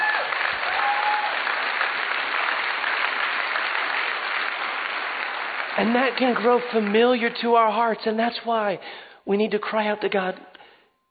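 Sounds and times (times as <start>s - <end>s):
audience clapping: 0.0s - 7.9s
speech: 5.8s - 10.5s.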